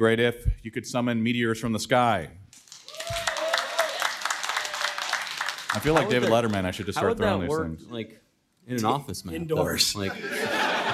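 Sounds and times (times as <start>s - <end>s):
speech: 0.0s - 3.2s, 5.8s - 10.6s
audience applause: 2.6s - 7.0s
laughter: 5.7s - 7.6s, 10.0s - 10.9s.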